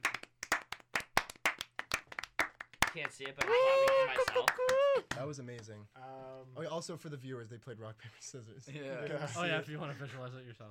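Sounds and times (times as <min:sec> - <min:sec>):
applause, hands clapping: 0:00.0 - 0:05.8
speech: 0:02.9 - 0:10.6.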